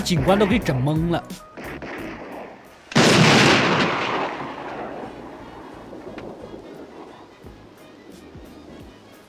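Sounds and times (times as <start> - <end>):
speech: 0.1 - 1.8
large-caliber handgun shot during a shooting lesson in the film Police Academy: 1.6 - 7.1.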